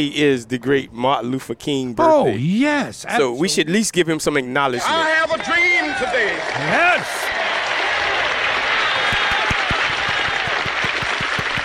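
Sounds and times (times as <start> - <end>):
speech: 0.0 - 7.3
applause: 5.2 - 11.6.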